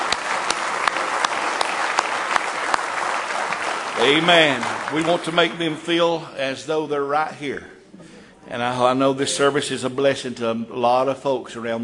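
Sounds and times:
audience hand clapping: 0:00.0 - 0:06.0
speech: 0:04.0 - 0:07.8, 0:08.5 - 0:11.8.

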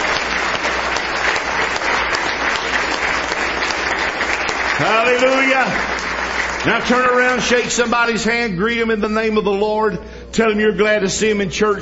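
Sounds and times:
audience hand clapping: 0:00.0 - 0:08.2
speech: 0:04.8 - 0:05.9, 0:06.6 - 0:11.7.

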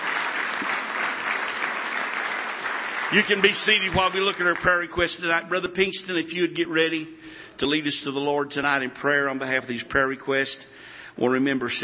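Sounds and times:
audience applause: 0:00.0 - 0:05.0
speech: 0:03.1 - 0:11.8.

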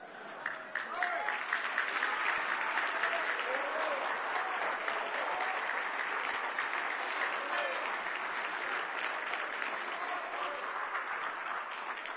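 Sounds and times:
audience clapping: 0:00.0 - 0:12.1.

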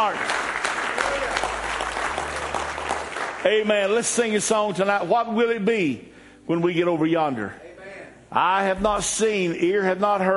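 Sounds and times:
audience hand clapping: 0:00.0 - 0:04.4
speech: 0:03.4 - 0:07.6, 0:08.3 - 0:10.3.

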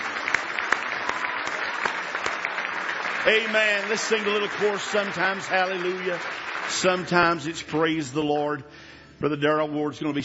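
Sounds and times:
church congregation hand clapping of praise during a service: 0:00.0 - 0:08.2
speech: 0:03.2 - 0:10.2.

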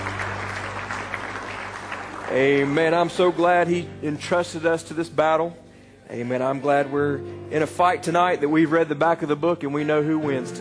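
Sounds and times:
church congregation clapping hands in praise during a worship service: 0:00.0 - 0:03.8
speech: 0:02.3 - 0:10.5.

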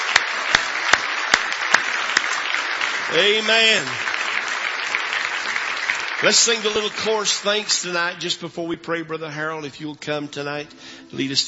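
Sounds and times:
audience hand clapping in praise: 0:00.0 - 0:08.4
speech: 0:03.1 - 0:04.1, 0:06.2 - 0:11.4.

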